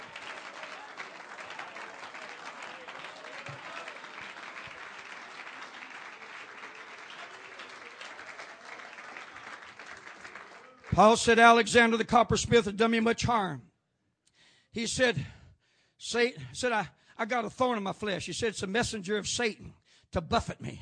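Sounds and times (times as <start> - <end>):
audience clapping hands: 0.0 - 12.0
speech: 11.0 - 13.7, 14.8 - 15.4, 16.0 - 20.8.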